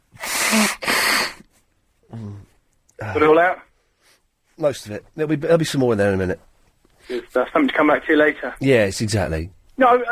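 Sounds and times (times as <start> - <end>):
person blowing nose: 0.1 - 1.6
speech: 0.5 - 0.8, 3.1 - 3.6, 4.6 - 6.5, 7.1 - 10.0.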